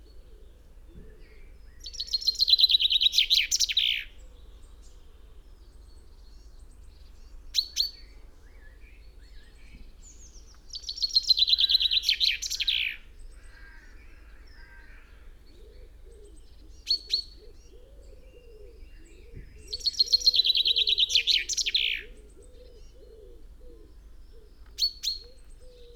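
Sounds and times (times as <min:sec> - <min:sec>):
Common chaffinch Fringilla coelebs singing: 0:01.3 - 0:04.1, 0:06.4 - 0:13.8, 0:15.5 - 0:23.4.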